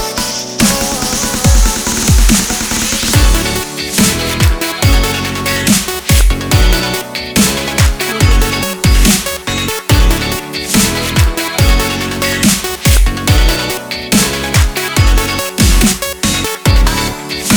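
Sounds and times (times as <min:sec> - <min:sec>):
summer future bass pop funk music: 0:00.0 - 0:17.5.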